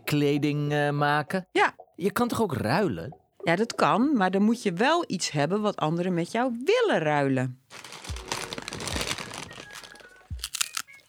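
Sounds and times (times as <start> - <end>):
speech: 0.1 - 8.0
chocolate cookies crunching: 7.9 - 11.0.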